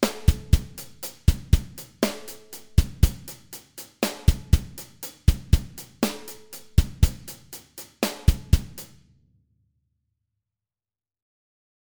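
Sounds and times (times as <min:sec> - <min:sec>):
bass drum: 0:00.0 - 0:03.4, 0:04.0 - 0:08.8.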